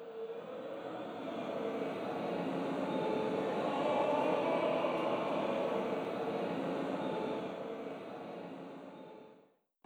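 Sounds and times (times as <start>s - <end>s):
creepy chorus: 0.1s - 9.3s.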